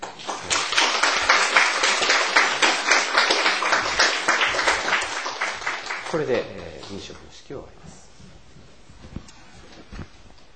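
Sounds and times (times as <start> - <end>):
teachers applauding at a school ceremony: 0.0 - 7.4
speech: 6.1 - 8.1.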